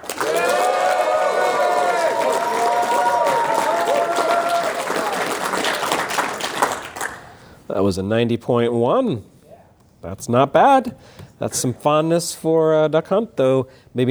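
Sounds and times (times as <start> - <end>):
voices whooping and calling out: 0.0 - 7.2
studio audience applause: 0.0 - 7.5
speech: 7.8 - 9.3, 10.0 - 14.0.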